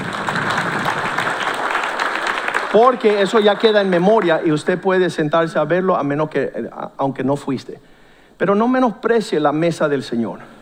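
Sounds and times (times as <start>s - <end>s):
audience applause: 0.0s - 4.5s
speech: 2.8s - 10.5s.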